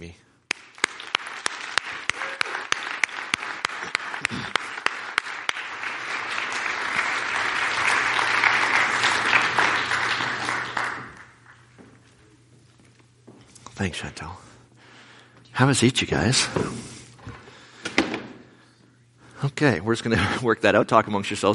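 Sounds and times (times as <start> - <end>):
speech: 0.0 - 0.3, 4.3 - 4.5, 13.8 - 14.5, 15.6 - 16.9, 19.6 - 21.5
churchgoers applauding to welcome guests: 0.5 - 11.6.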